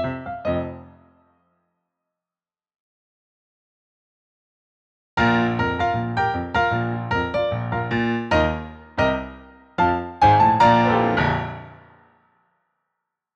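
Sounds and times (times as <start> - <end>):
audition accompaniment music: 5.2 - 11.8.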